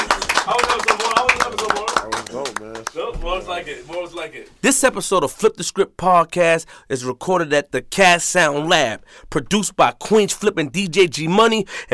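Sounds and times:
few people clapping: 0:00.0 - 0:04.5
lively overlapping talk and voices: 0:00.0 - 0:05.3
speech: 0:02.4 - 0:11.9.

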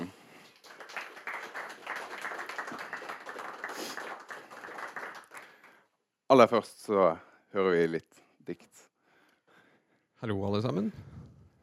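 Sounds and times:
audience applause: 0:00.4 - 0:05.8
speech: 0:06.3 - 0:08.9, 0:10.2 - 0:11.1.

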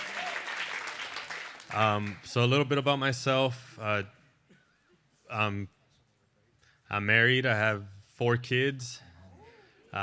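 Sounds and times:
audience clapping hands at church service: 0:00.0 - 0:02.5
speech: 0:01.7 - 0:04.2, 0:05.3 - 0:05.8, 0:06.9 - 0:09.1.

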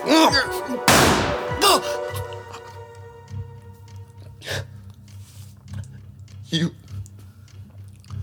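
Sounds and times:
voices: 0:00.0 - 0:04.6
gunshot during a struggle over a gun: 0:00.9 - 0:02.2.

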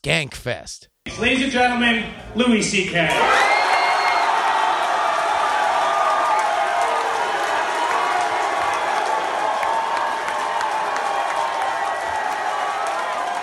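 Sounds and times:
speech: 0:00.0 - 0:03.7
comedy audience applauding: 0:03.1 - 0:13.4.

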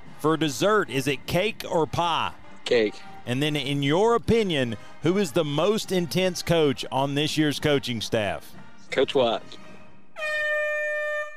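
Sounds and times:
speech: 0:00.2 - 0:09.6
buzzer horn ending timed quiz segment: 0:10.2 - 0:11.3.

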